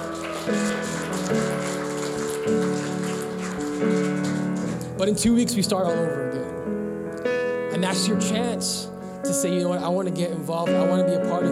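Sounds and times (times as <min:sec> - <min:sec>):
crowd clapping: 0:00.0 - 0:05.1
sustained music chords: 0:00.0 - 0:11.4
speech: 0:00.4 - 0:01.5, 0:05.0 - 0:06.5, 0:07.8 - 0:11.4.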